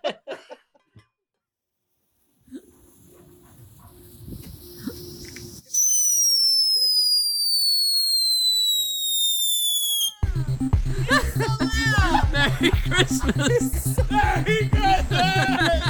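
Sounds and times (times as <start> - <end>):
laughter: 0.0 - 0.8, 10.3 - 15.8
outdoor firework high whistle falling in pitch: 2.5 - 10.3
speech: 12.6 - 15.7.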